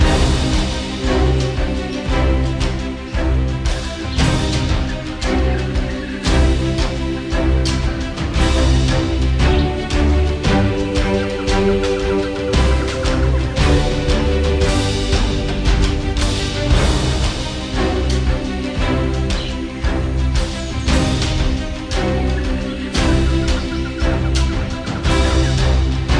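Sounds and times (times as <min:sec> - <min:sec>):
ambience: 0:00.0 - 0:26.1.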